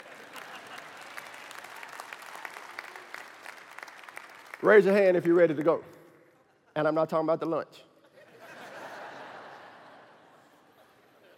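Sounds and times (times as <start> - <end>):
laughter: 0.0 - 1.3, 8.0 - 11.3
audience clapping: 0.0 - 5.9
speech: 4.6 - 6.0, 6.8 - 7.9.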